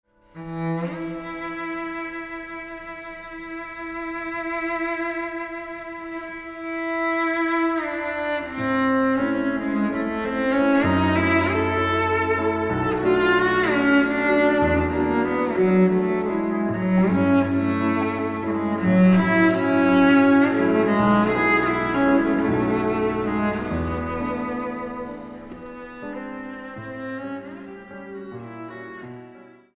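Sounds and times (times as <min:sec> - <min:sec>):
cello and piano romanza: 0:00.1 - 0:29.7.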